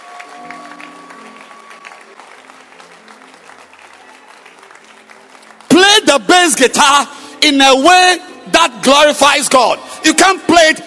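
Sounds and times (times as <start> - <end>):
audience clapping: 0.0 - 7.0
speech: 6.1 - 10.8.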